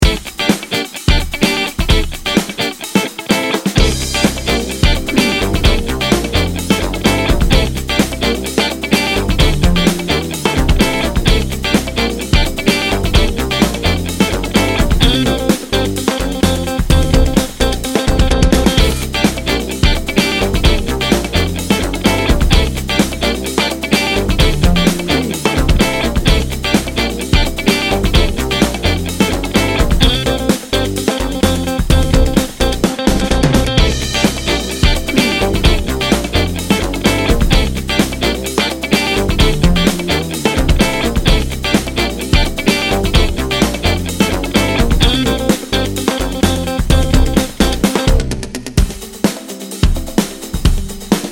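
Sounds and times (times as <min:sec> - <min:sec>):
funky bounce music bed: 0:00.0 - 0:51.3.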